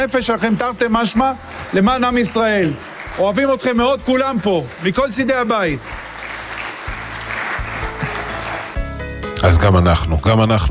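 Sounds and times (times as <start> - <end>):
speech: 0.0 - 6.1, 9.4 - 10.6
audience applause: 1.0 - 8.8.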